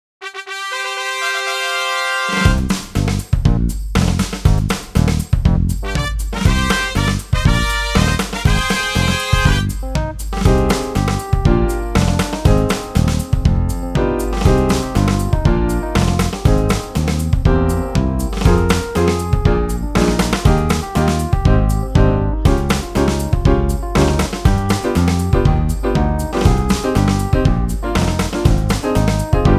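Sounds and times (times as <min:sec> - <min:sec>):
instrumental music: 0:00.2 - 0:29.5.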